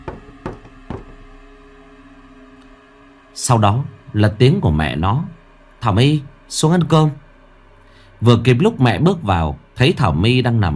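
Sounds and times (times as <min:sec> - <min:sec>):
knocking on a door: 0:00.0 - 0:01.2
hiss: 0:00.0 - 0:10.7
speech: 0:03.4 - 0:07.2, 0:08.2 - 0:10.7.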